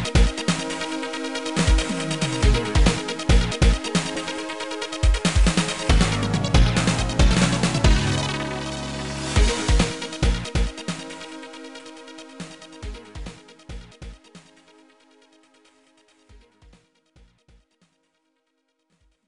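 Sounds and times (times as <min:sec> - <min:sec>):
ground rhythm: 0:00.0 - 0:14.7.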